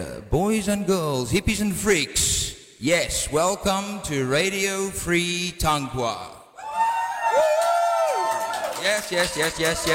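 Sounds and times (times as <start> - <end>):
speech: 0.0 - 6.4, 8.8 - 9.9
live audience cheering and whooping: 6.6 - 9.9.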